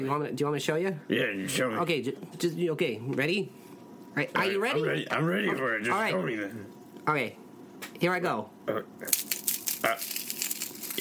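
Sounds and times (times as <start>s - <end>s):
speech: 0.0s - 7.4s, 8.0s - 10.2s
crackling noise: 9.0s - 10.9s.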